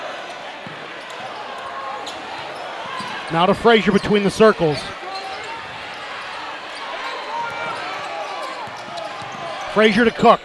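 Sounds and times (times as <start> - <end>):
steady loud arena din: 0.0 - 10.4
speech: 3.3 - 5.0, 9.8 - 10.4
basketball dribbled on a hardwood court in a South Carolina game: 8.6 - 9.5.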